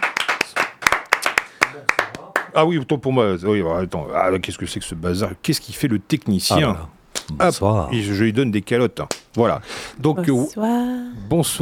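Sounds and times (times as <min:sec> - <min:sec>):
scattered applause from a small group: 0:00.0 - 0:02.5
speech: 0:01.8 - 0:02.0, 0:02.6 - 0:11.6.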